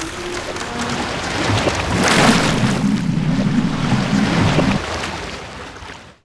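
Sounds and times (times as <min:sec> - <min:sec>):
ship destruction: 0:00.0 - 0:04.9.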